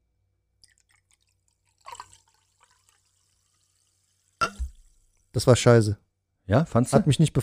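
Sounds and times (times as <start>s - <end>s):
fizzy drink pouring into a glass: 0.6s - 5.3s
speech: 5.4s - 7.4s.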